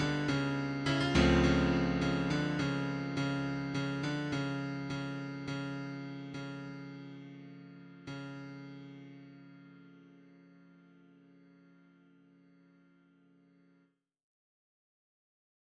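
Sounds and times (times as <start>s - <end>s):
prelude: 0.0s - 6.4s.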